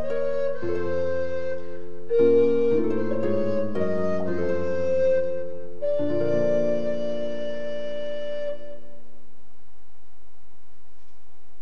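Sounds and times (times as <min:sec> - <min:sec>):
harp: 0:00.0 - 0:09.1
flute: 0:00.0 - 0:09.2.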